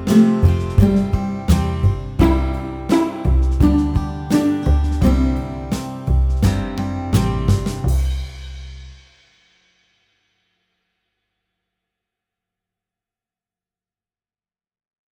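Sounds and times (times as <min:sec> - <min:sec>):
slow children's song on ukulele: 0:00.0 - 0:08.3.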